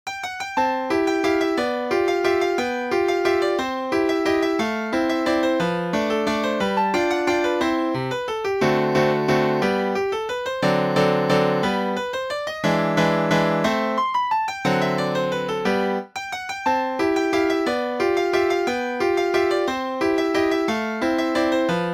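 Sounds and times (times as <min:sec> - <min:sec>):
piano waltz: 0:00.1 - 0:21.9.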